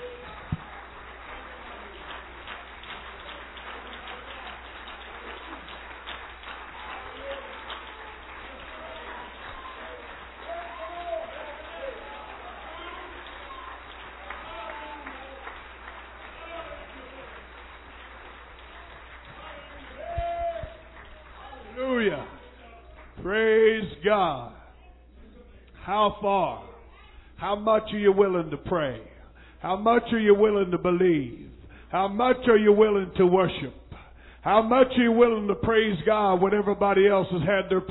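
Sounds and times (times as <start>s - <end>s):
crowd clapping hands: 0.0s - 23.8s
speech: 25.9s - 26.6s, 27.4s - 33.8s, 34.4s - 37.8s.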